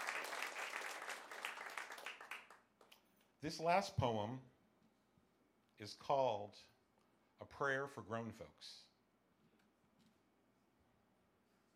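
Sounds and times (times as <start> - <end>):
audience applause: 0.0 - 2.6
speech: 3.4 - 4.5, 5.8 - 6.7, 7.4 - 8.9.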